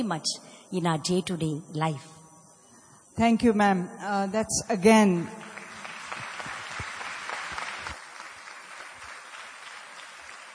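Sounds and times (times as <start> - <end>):
speech: 0.0 - 2.2, 3.2 - 5.5
audience clapping: 5.4 - 10.5.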